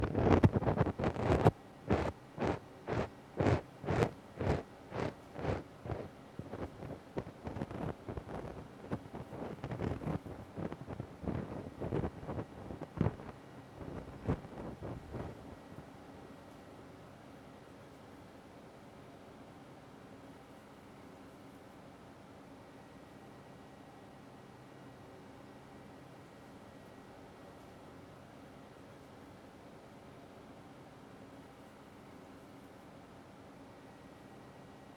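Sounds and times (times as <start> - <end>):
ear cleaning ASMR on the right side: 0.0 - 15.6.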